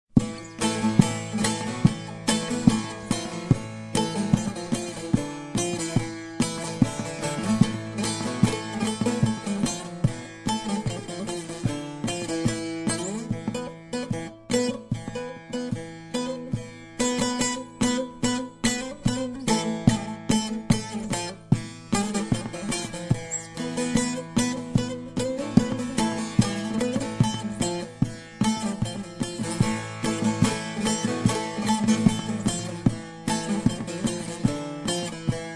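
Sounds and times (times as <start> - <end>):
saz: 0.1 - 35.5.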